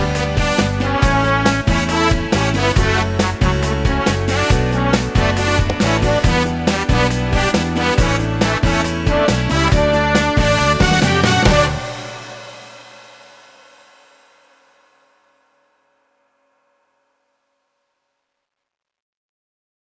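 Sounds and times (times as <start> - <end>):
Yamaha keyboard accompaniment style: 0.0 - 12.7.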